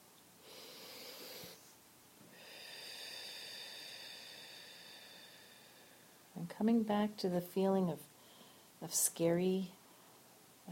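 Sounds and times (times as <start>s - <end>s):
slow deep breath during a guided self-care exercise: 0.4s - 6.3s, 8.2s - 8.8s
speech: 6.4s - 8.1s, 8.8s - 9.8s.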